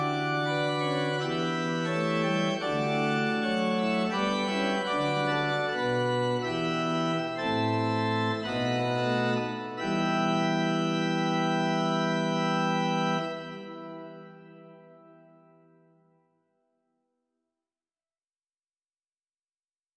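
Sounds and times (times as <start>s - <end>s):
pipe organ Rugwerk Scherp stop in Zwolle: 0.0s - 15.8s.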